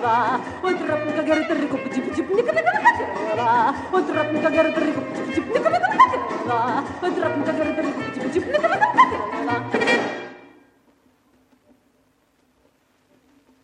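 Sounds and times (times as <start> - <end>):
Brazilian comic tongue-twister song: 0.0 - 10.2.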